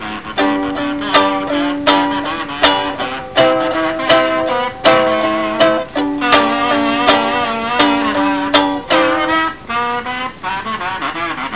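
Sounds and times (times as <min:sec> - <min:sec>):
kazoo: 0:00.0 - 0:11.5.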